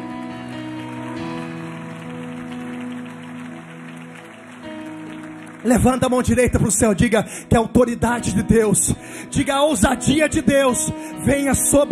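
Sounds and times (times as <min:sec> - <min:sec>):
audience applause: 0:00.0 - 0:07.5
speech: 0:05.6 - 0:11.9.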